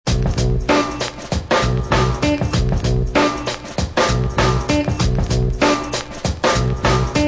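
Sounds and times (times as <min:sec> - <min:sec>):
drum loops: 0:00.1 - 0:07.2.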